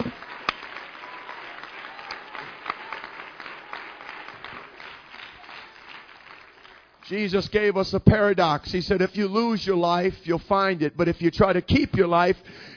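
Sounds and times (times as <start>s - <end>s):
audience applause: 0.0s - 7.1s
speech: 7.1s - 12.7s.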